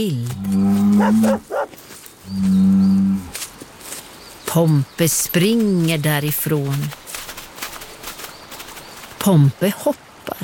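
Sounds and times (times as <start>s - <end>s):
speech: 0.0s - 1.6s, 2.3s - 2.9s, 4.5s - 7.0s, 9.2s - 10.0s
bull mooing: 0.3s - 1.6s.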